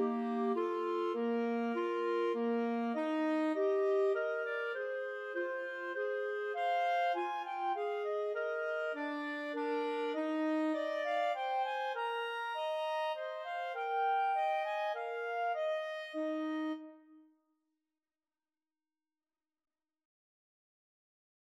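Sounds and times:
clarinet duet: 0.0s - 17.2s.

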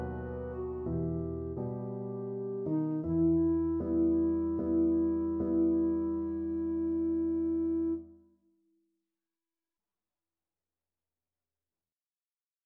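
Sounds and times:
clarinet: 0.0s - 8.2s
piano sonata: 0.0s - 8.2s.

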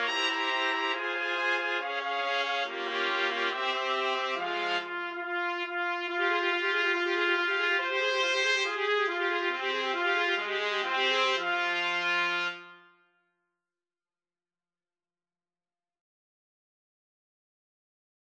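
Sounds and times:
trumpets playing: 0.0s - 12.9s.

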